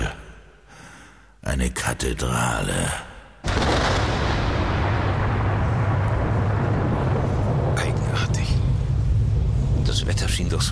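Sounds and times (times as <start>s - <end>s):
speech: 1.6s - 3.1s, 10.4s - 10.6s
thunder from a heat thunderstorm: 3.4s - 10.6s.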